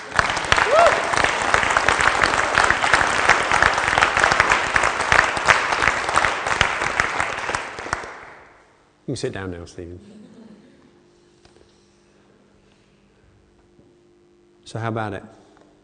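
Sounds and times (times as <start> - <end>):
audience applause: 0.0 - 8.6
speech: 9.1 - 10.2, 14.7 - 15.4.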